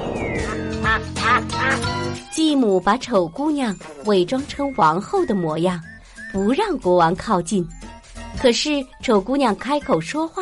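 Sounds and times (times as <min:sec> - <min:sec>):
duck quacking: 0:00.4 - 0:01.9
speech: 0:01.0 - 0:07.8, 0:08.4 - 0:10.3.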